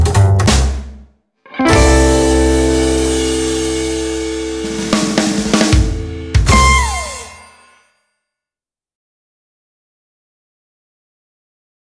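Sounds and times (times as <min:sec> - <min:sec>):
rockabilly music: 0:01.5 - 0:07.7.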